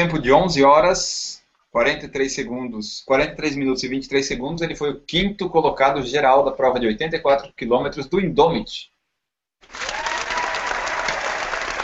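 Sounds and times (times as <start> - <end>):
speech: 0.0 - 8.9
audience applause: 9.6 - 11.8.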